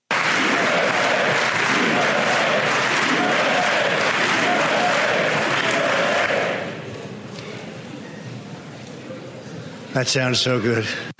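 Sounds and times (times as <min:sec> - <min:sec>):
crowd chanting at a political rally: 0:00.1 - 0:06.9
speech: 0:10.0 - 0:11.1.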